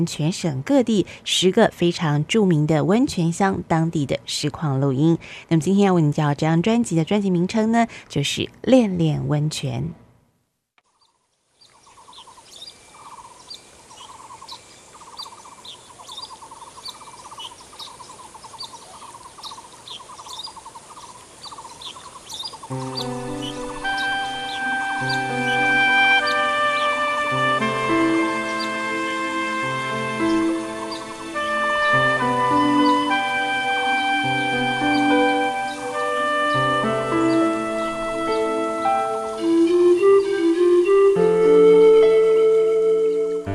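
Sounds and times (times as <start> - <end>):
speech: 0.0 - 10.0
insects chirping: 10.9 - 42.2
birds calling: 10.9 - 43.4.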